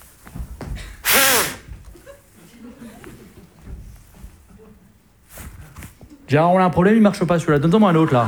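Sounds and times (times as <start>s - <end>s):
person blowing into a police breathalyser at a roadside checkpoint: 1.0s - 1.7s
laughter: 1.7s - 5.2s, 6.1s - 8.2s
speech: 6.3s - 8.2s.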